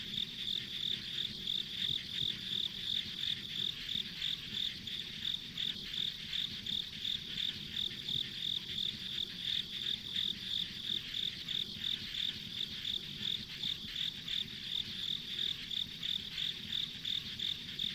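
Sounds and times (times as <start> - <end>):
insect chirping: 0.0 - 17.9.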